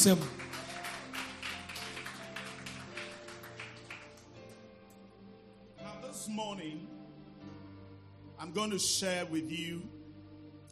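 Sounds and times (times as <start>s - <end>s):
speech: 0.0s - 0.4s, 6.4s - 7.0s, 8.4s - 10.0s
audience clapping: 0.0s - 4.7s.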